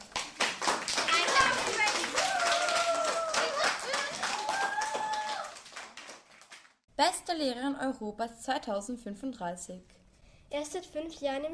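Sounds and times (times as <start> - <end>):
crowd applauding: 0.0 - 6.8
voices calling out and cheering: 1.1 - 5.5
speech: 7.0 - 11.5.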